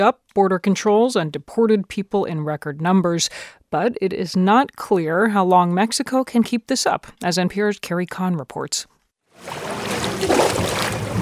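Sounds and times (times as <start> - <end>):
speech: 0.0 - 10.4
water and boat noise from rubber-tire rafts on the Suchiate River: 9.4 - 11.1.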